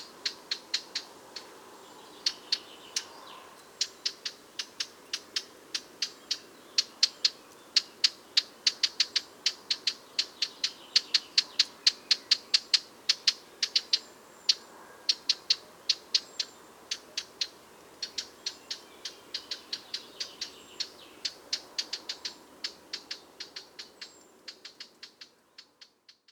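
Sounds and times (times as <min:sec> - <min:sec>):
Eurasian blackcap tac calls: 0:00.0 - 0:26.3.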